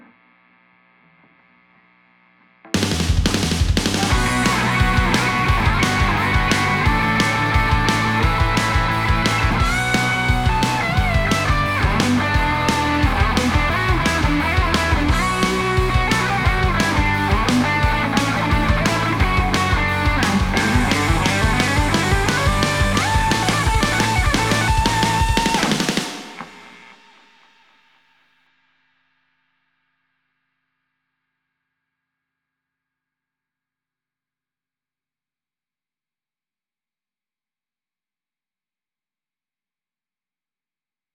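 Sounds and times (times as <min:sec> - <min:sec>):
guitar: 0:02.8 - 0:26.9.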